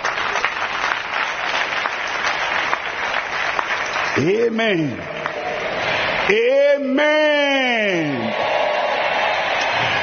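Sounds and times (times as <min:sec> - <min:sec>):
audience clapping: 0:00.0 - 0:06.4, 0:07.9 - 0:10.0
speech: 0:04.2 - 0:05.2, 0:06.3 - 0:08.4.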